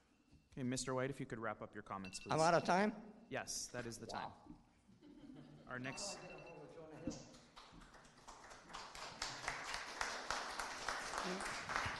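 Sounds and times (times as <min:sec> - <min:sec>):
speech: 0:00.6 - 0:04.6, 0:05.7 - 0:06.4, 0:07.1 - 0:07.4, 0:11.2 - 0:11.8
audience clapping: 0:07.2 - 0:11.9.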